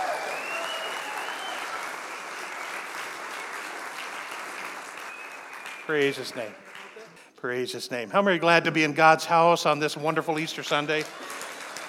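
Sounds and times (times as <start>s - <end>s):
audience clapping and applause: 0.0s - 7.4s, 10.7s - 11.8s
speech: 5.9s - 6.7s, 7.4s - 11.2s.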